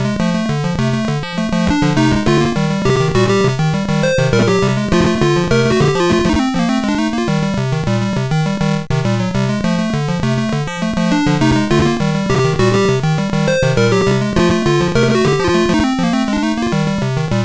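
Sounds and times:
music box melody on SID MOS6581R4 chip: 0:00.1 - 0:08.6, 0:09.6 - 0:17.4.

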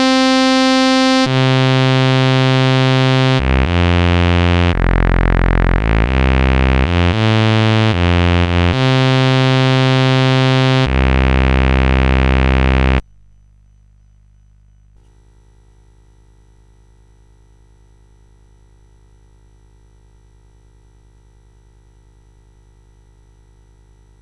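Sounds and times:
sword motif on CSG8580R5 sound chip: 0:00.0 - 0:13.0.

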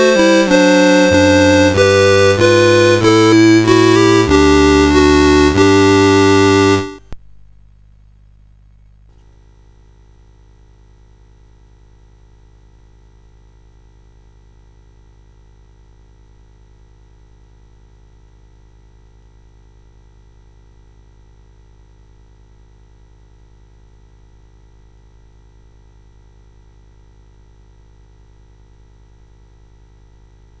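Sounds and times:
evening hymn melody on CSG8580 chip: 0:00.0 - 0:07.1.

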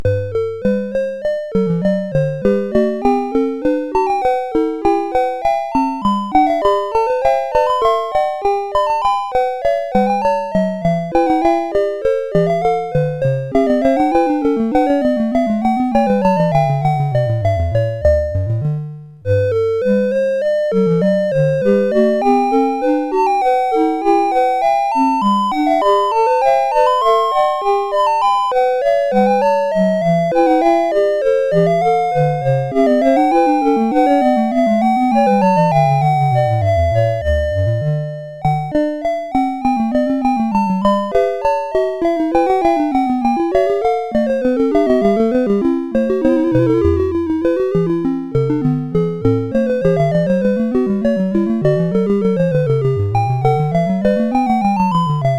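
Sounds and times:
baroque variations as SID chiptune music on CSG8580R5: 0:00.0 - 0:55.3.

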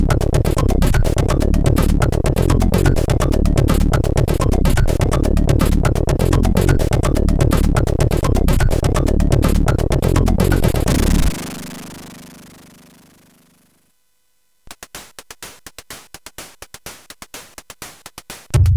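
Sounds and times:
CSG8580R5 sound chip noise: 0:00.0 - 0:13.2.

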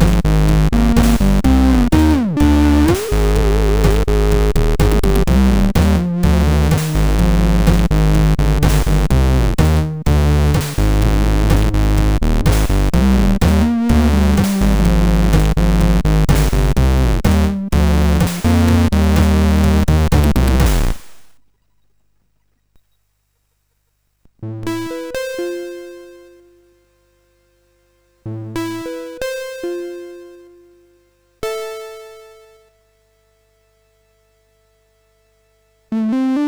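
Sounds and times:
MOS6581R4 SID chip music: 0:00.0 - 0:21.0, 0:28.3 - 0:30.6, 0:35.9 - 0:36.4.

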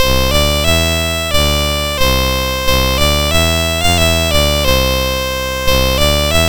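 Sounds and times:
MOS6581R4 chiptune game music: 0:00.0 - 0:06.4.

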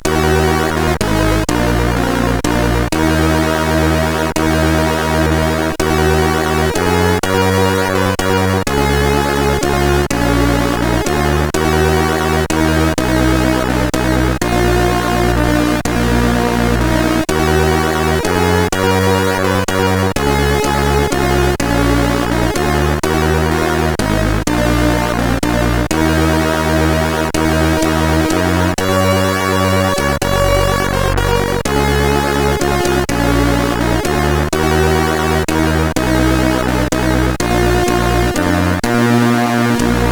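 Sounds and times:
SID CSG8580R5 chip music: 0:00.0 - 0:40.1.

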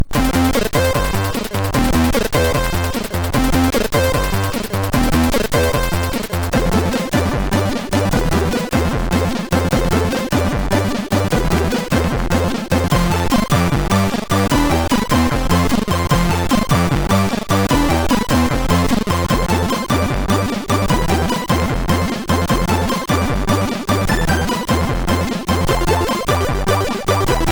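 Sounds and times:
MOS6581R4 tune: 0:00.1 - 0:27.5.

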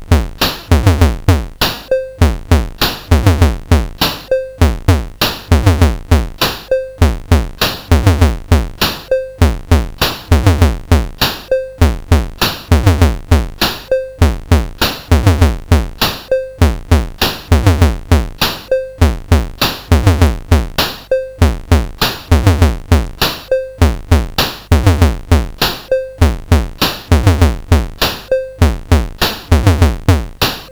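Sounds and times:
drums: 0:00.0 - 0:30.7.

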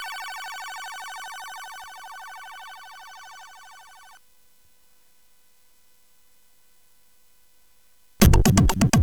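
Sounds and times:
sound chip music on CSG8580R5: 0:08.2 - 0:09.0.

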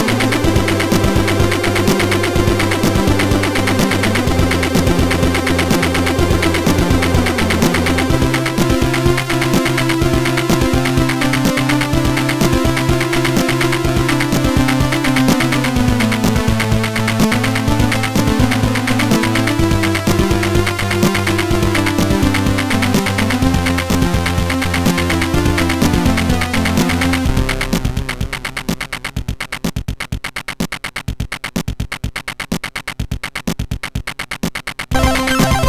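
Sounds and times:
beat box on a MOS6581R2 SID sound chip: 0:00.0 - 0:35.6.

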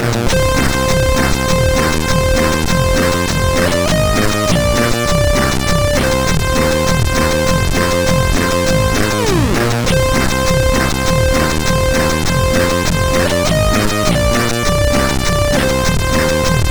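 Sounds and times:
chiptune music on MOS6581R3 sound chip: 0:00.0 - 0:16.6.

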